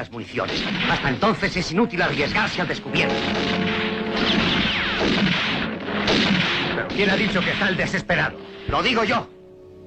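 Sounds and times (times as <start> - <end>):
speech: 0.0 - 5.5, 7.0 - 9.4
gunfire in a shootout: 0.5 - 1.4, 3.0 - 7.8.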